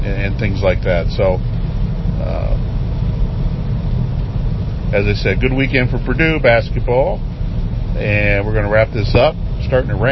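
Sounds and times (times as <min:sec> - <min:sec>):
car engine drone: 0:00.0 - 0:10.0
road noise: 0:00.0 - 0:10.0
speech: 0:00.1 - 0:01.6, 0:02.2 - 0:02.7, 0:04.9 - 0:07.3, 0:08.0 - 0:10.0.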